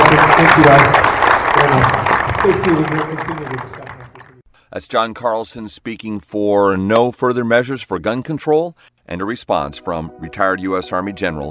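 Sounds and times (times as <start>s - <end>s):
audience applause: 0.0s - 4.4s
speech: 0.6s - 1.0s, 2.4s - 3.9s, 4.7s - 11.4s.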